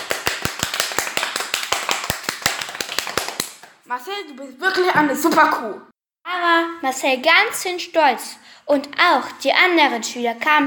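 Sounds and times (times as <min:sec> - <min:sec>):
applause: 0:00.0 - 0:03.8
speech: 0:03.9 - 0:10.6.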